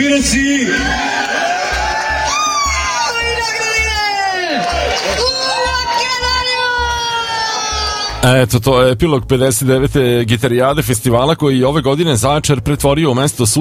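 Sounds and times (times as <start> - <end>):
speech: 0.0 - 1.1, 8.2 - 13.5
festival crowd applauding: 0.6 - 8.2.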